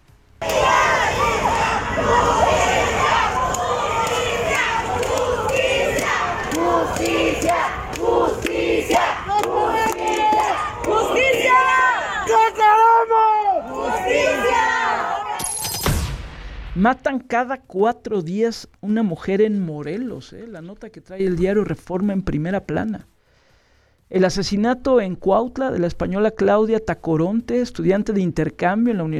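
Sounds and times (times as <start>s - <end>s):
protest march crowd chanting and shouting in the streets of Morelos: 0.4s - 15.8s
speech: 16.8s - 23.1s, 24.1s - 29.1s.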